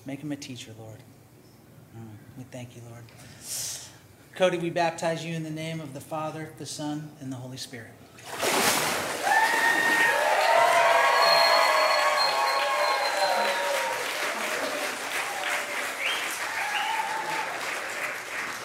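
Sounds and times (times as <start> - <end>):
speech: 0.0 - 1.2, 2.0 - 3.8, 4.4 - 8.4
whoops and raised voices: 9.2 - 17.6
crowd clapping: 9.2 - 18.6.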